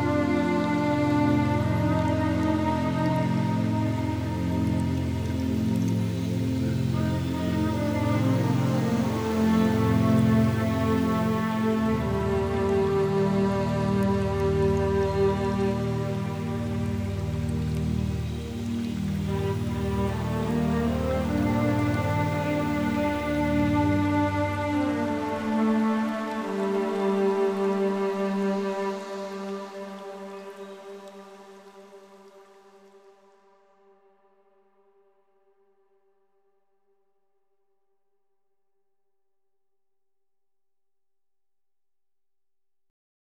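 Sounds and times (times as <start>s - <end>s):
night rain: 0.0s - 33.4s
calming music: 0.0s - 34.7s.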